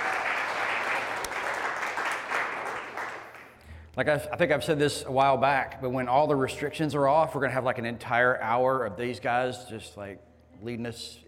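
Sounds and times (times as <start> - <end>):
audience clapping: 0.0 - 3.6
speech: 4.0 - 11.2.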